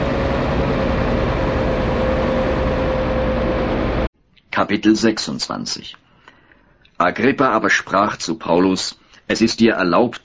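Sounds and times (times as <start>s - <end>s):
motor ship engine drone setting off on a sea voyage: 0.0s - 4.1s
speech: 4.6s - 6.0s, 7.0s - 10.2s.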